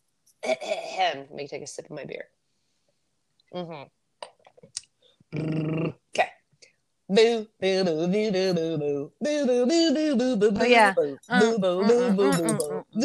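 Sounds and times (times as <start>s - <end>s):
speech: 0.5s - 2.4s, 3.5s - 4.0s, 4.6s - 6.3s, 7.1s - 13.0s
person singing the opening of a 90s pop song without words: 7.1s - 13.0s.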